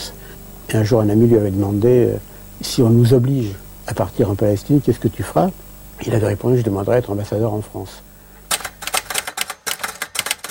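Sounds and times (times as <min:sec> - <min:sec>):
speech: 0:00.7 - 0:08.1
Olivetti typewriter typing: 0:08.5 - 0:10.4.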